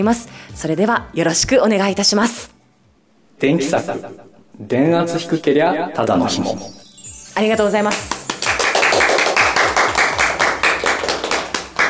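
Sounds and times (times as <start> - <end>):
speech: 0.0 - 2.6, 3.4 - 6.8, 7.4 - 8.2
applause: 7.6 - 11.8.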